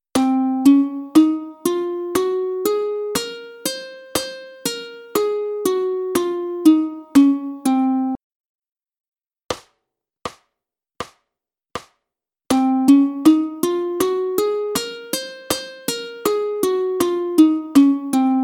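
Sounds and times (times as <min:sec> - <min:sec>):
ukulele playing a Locrian scale: 0:00.1 - 0:08.2, 0:12.5 - 0:18.4.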